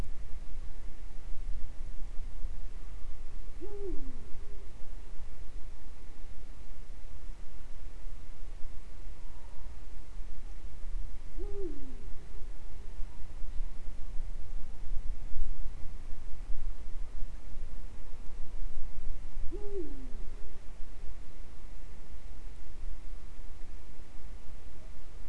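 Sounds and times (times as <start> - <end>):
steady background hiss: 0.0 - 25.2
Eurasian eagle-owl hooting: 3.6 - 4.5, 11.4 - 12.1, 19.4 - 20.4.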